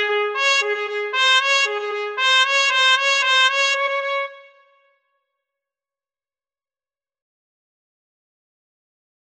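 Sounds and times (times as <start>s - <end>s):
etude in E-flat major played loudly: 0.0s - 4.6s.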